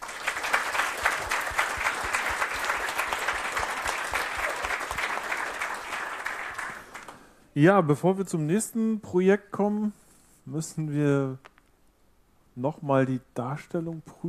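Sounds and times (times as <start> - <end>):
audience applause: 0.0 - 7.3
speech: 7.6 - 11.5, 12.6 - 14.2.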